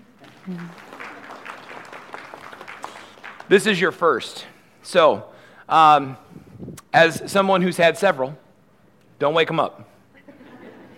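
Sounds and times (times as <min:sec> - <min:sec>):
golf clap, quiet applause: 0:00.0 - 0:03.9
speech: 0:00.5 - 0:00.9, 0:03.5 - 0:06.3, 0:06.9 - 0:08.4, 0:09.2 - 0:09.9
laughter: 0:10.2 - 0:10.9.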